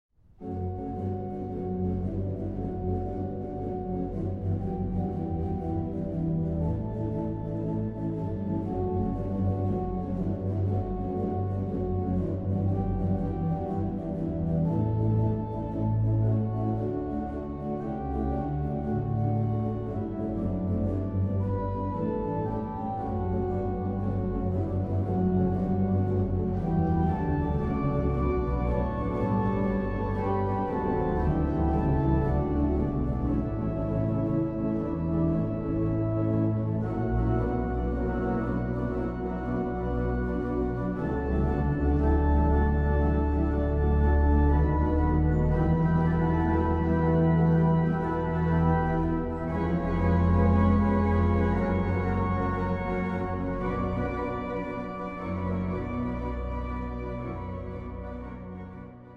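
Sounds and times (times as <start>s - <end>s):
main organ improvisation: 0.4s - 59.1s.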